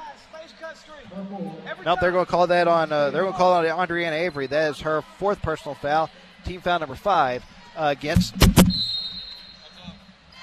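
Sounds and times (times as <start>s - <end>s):
speech: 0.6s - 8.6s
thin high tone: 1.1s - 2.1s
basketball striking Comrex broadcast equipment: 8.1s - 8.9s.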